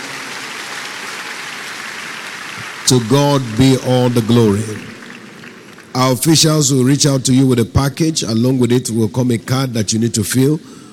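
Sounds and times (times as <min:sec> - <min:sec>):
church congregation clapping in praise during a service: 0:00.0 - 0:08.1
speech: 0:02.9 - 0:04.9, 0:06.0 - 0:10.8.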